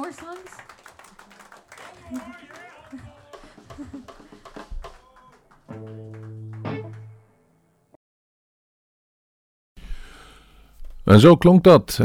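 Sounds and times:
applause after a song: 0.0s - 7.2s
laughter: 1.1s - 5.4s
speech: 11.1s - 12.0s.

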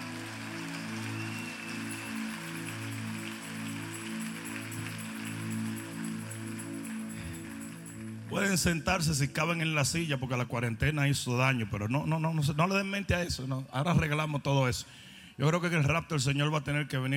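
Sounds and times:
audience applause: 0.0s - 8.3s
speech: 8.3s - 17.1s.

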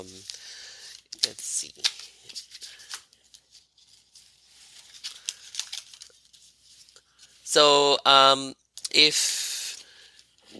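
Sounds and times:
tarot cards pulled from a deck: 0.2s - 7.3s
speech: 7.6s - 9.4s.

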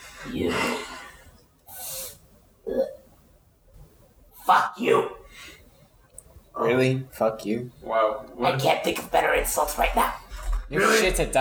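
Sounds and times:
speech: 0.2s - 1.1s, 4.5s - 5.2s, 6.6s - 11.3s
person imitating choking while held by the throat: 2.6s - 3.1s.

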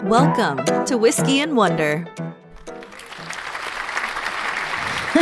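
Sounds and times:
speech: 0.2s - 2.4s
crowd applause sound effect: 2.6s - 5.1s.

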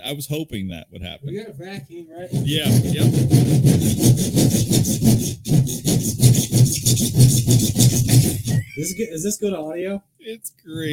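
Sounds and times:
speech: 0.0s - 5.9s, 8.8s - 10.9s
hand saw cutting wood: 2.3s - 8.6s.

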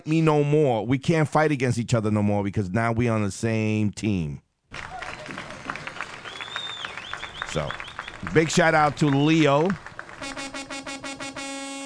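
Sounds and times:
speech: 0.0s - 4.9s, 7.6s - 10.4s
truck horn blast: 10.1s - 11.8s.

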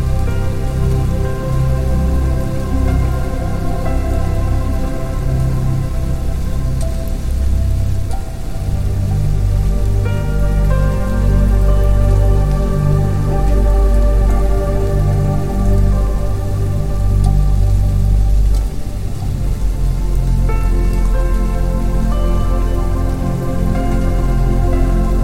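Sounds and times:
gentle rain tapping on the leaves: 0.0s - 25.2s
soft sustained music with low held tones and chords: 0.0s - 25.2s.

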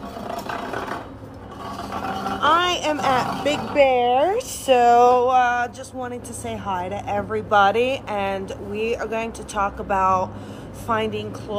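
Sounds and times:
chair being dragged with a wooden rasp: 0.0s - 4.1s
speech: 2.7s - 11.5s.

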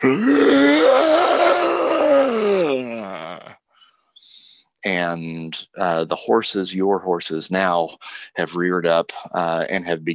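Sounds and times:
speech: 0.0s - 0.6s, 5.1s - 10.1s
person imitating an unearthly zombie growl and moan: 0.0s - 3.6s.

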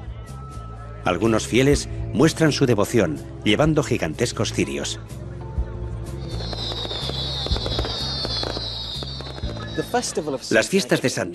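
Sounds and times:
speech: 1.0s - 5.2s, 9.9s - 11.3s
fireworks crackling and popping at a festival: 6.2s - 10.5s.

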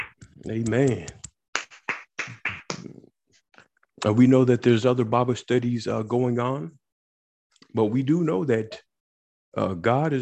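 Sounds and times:
group clapping hands: 0.0s - 2.9s
speech: 0.4s - 1.2s, 4.0s - 6.8s, 7.7s - 8.8s, 9.5s - 10.1s.

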